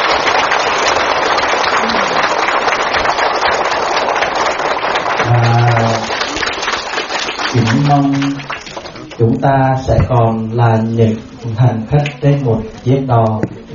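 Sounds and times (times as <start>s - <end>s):
long round of applause: 0.0s - 9.3s
speech: 9.3s - 13.6s.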